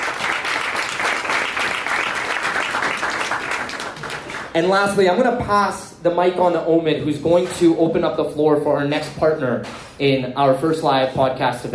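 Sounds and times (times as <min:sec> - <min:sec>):
audience applause: 0:00.0 - 0:04.5
speech: 0:04.6 - 0:11.7.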